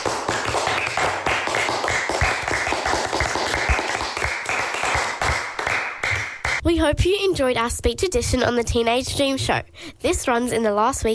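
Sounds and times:
small group clapping in a round of applause: 0.0 - 6.6
speech: 6.6 - 11.1.

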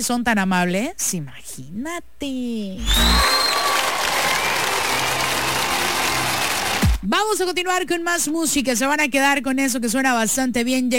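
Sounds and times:
speech: 0.0 - 3.6, 7.0 - 10.9
applause: 2.8 - 7.1.

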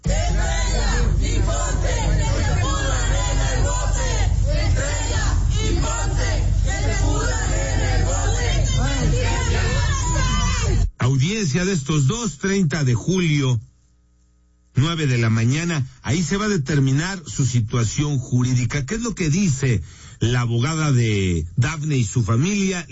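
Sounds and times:
protesters shouting: 0.0 - 10.8
speech: 11.4 - 13.7, 14.8 - 22.9.

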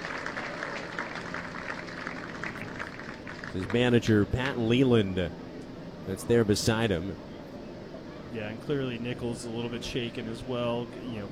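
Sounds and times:
Biscuits fans applauding at a baseball game: 0.0 - 4.6
speech: 3.6 - 5.4, 6.1 - 7.3, 8.3 - 11.2.

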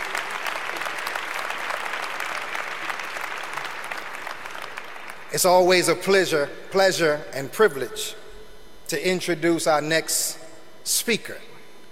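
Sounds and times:
audience applause: 0.0 - 5.3
speech: 5.4 - 8.2, 8.9 - 11.5.

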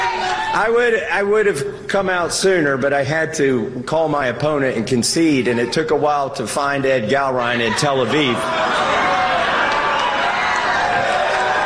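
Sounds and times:
crowd cheering: 0.0 - 1.0, 7.4 - 11.6
speech: 0.6 - 9.4.

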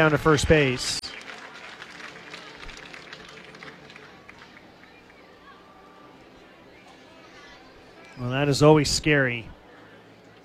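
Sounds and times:
speech: 0.0 - 1.0, 8.2 - 9.6
stadium fans applauding: 0.0 - 5.3
low murmur of voices: 0.0 - 10.4.

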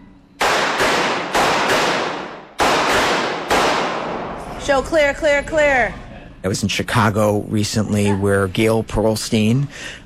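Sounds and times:
gunshots from shooters at a firearm training range: 0.4 - 4.5
speech: 4.7 - 10.0.

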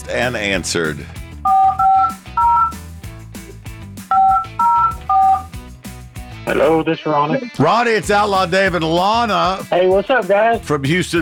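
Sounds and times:
steady music bed: 0.0 - 11.1
speech: 0.1 - 1.2, 6.5 - 11.1
touch-tone beeps of a phone number being dialed: 1.5 - 2.8, 4.1 - 5.5.

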